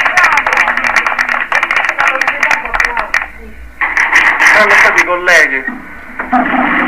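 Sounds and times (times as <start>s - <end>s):
crowd applauding: 0.0s - 3.1s
speech: 4.6s - 6.7s.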